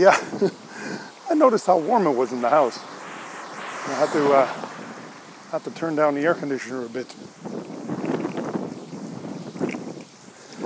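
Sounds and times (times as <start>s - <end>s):
speech: 0.0s - 0.6s, 1.3s - 3.0s, 3.9s - 4.8s, 5.5s - 7.7s
wind blowing on the microphone: 0.0s - 10.6s.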